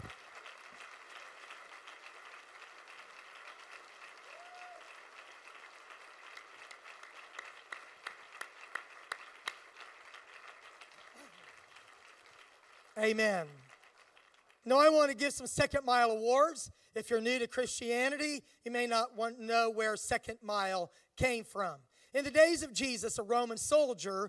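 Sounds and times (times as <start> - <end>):
audience applause: 0.0 - 14.6
speech: 13.0 - 13.6, 14.6 - 24.2.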